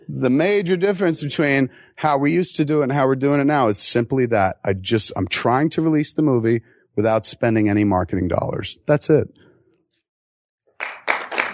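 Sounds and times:
speech: 0.2 - 9.4
audience applause: 10.8 - 11.5.

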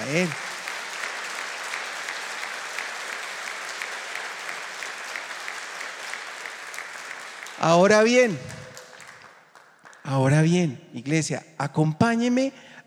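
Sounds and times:
audience applause: 0.0 - 10.1
speech: 0.1 - 0.4, 7.6 - 8.6, 10.1 - 12.7.

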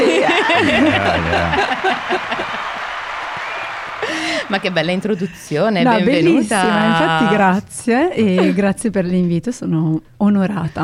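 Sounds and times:
laughter: 0.0 - 7.6
applause: 0.4 - 5.4
speech: 4.5 - 10.8.

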